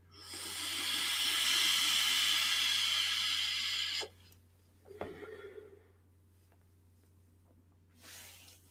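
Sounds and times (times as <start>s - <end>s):
vape mod firing at 80 watts with good wicking, vapour hissing: 0.2s - 4.1s.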